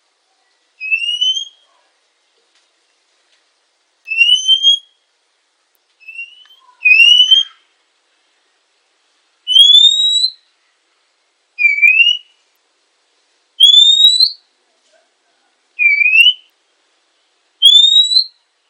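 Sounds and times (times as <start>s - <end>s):
female Oriental magpie-robin whistled notes: 0.8s - 1.7s, 4.1s - 5.0s, 6.0s - 7.6s, 9.5s - 10.4s, 11.6s - 12.3s, 13.6s - 14.4s, 15.8s - 16.5s, 17.6s - 18.4s.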